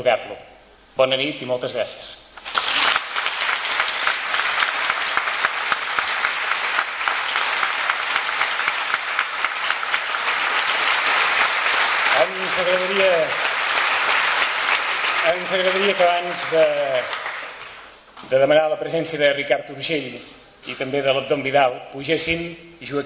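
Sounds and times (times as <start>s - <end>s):
speech: 0.0s - 2.2s, 12.6s - 13.5s, 15.2s - 17.2s, 18.2s - 23.0s
audience applause: 2.4s - 17.9s.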